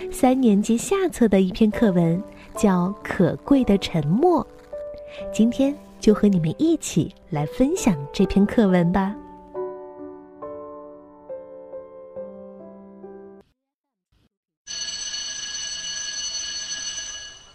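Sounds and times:
speech: 0:00.0 - 0:09.2
school bell ringing for class: 0:14.7 - 0:17.5.

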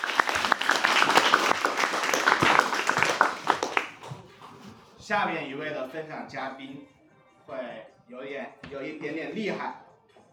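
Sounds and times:
audience applauding: 0:00.0 - 0:04.7
speech: 0:05.1 - 0:09.8.

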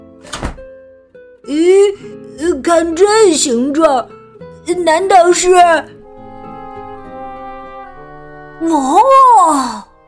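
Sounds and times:
umbrella snapping open with a pop: 0:00.2 - 0:00.7
speech: 0:01.4 - 0:06.0, 0:08.6 - 0:09.8.

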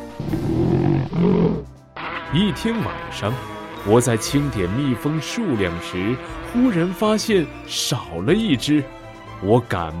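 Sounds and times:
bears roaring: 0:00.0 - 0:01.8
speech: 0:02.3 - 0:09.9.

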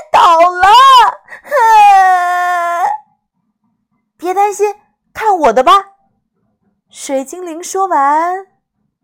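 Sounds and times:
flower fairy sobbing and wailing in a children's story: 0:00.2 - 0:03.0
speech: 0:05.5 - 0:05.8, 0:07.0 - 0:08.5.

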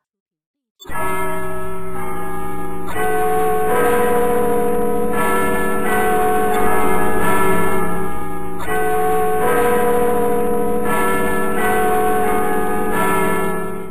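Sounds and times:
cathedral church bells ringing: 0:00.9 - 0:13.8.

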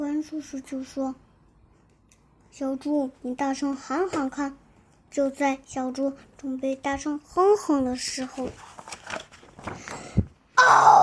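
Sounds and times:
speech: 0:00.2 - 0:01.3, 0:02.5 - 0:08.7, 0:10.7 - 0:11.0
person imitating a lion roar: 0:10.6 - 0:11.0.

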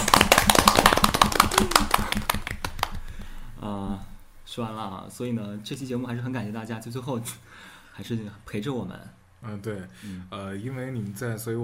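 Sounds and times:
rhythmic hand claps: 0:00.0 - 0:03.4
speech: 0:04.6 - 0:11.6.

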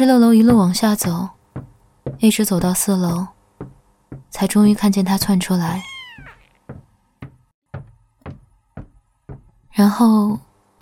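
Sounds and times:
speech: 0:00.0 - 0:01.4, 0:02.2 - 0:03.3, 0:04.3 - 0:05.9, 0:09.8 - 0:10.8
sharp knocking thuds: 0:00.3 - 0:05.8, 0:06.6 - 0:09.8
cat meowing: 0:05.7 - 0:06.6.

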